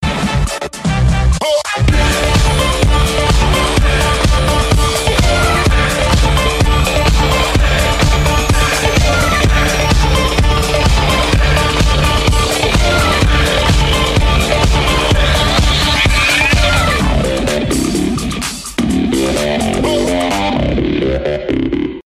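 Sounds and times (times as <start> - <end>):
outro music: 0.1 - 21.5.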